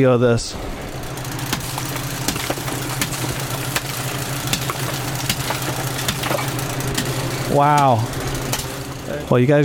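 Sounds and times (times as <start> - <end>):
speech: 0.0 - 0.8, 7.5 - 8.2, 9.1 - 9.6
low mechanical hum: 0.0 - 9.6
hammer chipping ice in a freezer: 1.5 - 7.2.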